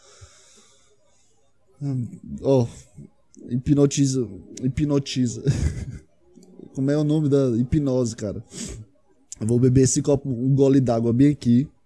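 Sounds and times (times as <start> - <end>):
man breathing heavily and nervously: 0.0 - 1.0
faint drawn-out wheezy breath with a hissy edge: 0.0 - 1.2, 8.5 - 8.9
speech: 1.8 - 6.0, 6.8 - 8.8, 9.4 - 11.8
laughter: 5.3 - 6.6.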